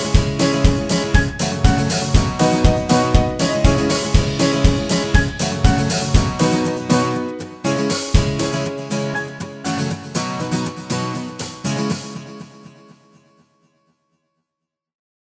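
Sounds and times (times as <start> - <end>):
positive uplifting motivational background music: 0.0 - 11.6.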